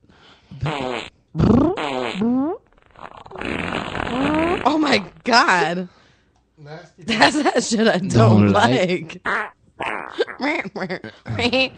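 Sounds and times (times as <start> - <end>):
speech: 0.5 - 1.1, 4.9 - 6.0, 6.6 - 9.5, 10.1 - 11.7
farts: 0.6 - 5.2, 9.3 - 10.4.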